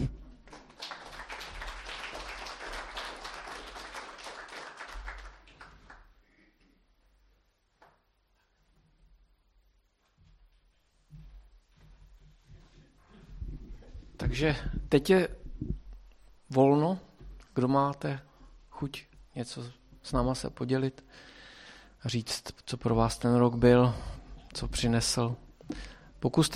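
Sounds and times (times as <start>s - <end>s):
audience applause after thanks for the past year: 0.0s - 6.2s
faint rustling: 6.6s - 14.3s
speech: 14.3s - 15.7s, 16.5s - 21.3s, 22.0s - 26.5s.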